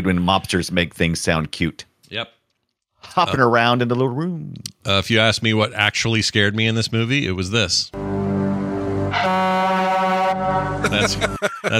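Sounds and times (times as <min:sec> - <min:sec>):
speech: 0:00.0 - 0:02.4, 0:03.0 - 0:08.1, 0:10.4 - 0:11.7
loud air horn blast: 0:08.0 - 0:11.4
laughter: 0:10.8 - 0:11.7.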